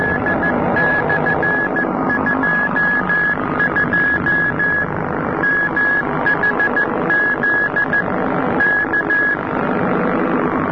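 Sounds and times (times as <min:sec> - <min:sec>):
morse code signal: 0:00.0 - 0:09.6.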